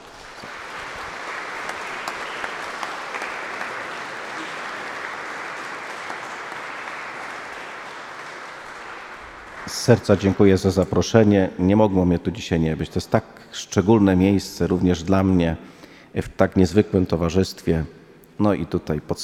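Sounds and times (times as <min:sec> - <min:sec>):
audience applause: 0:00.0 - 0:10.6
speech: 0:09.7 - 0:19.2.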